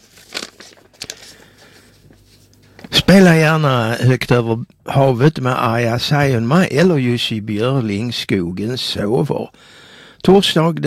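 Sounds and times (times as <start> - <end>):
paper letters rustling as pulled from an envelope: 0.0 - 3.0
speech: 3.1 - 10.8.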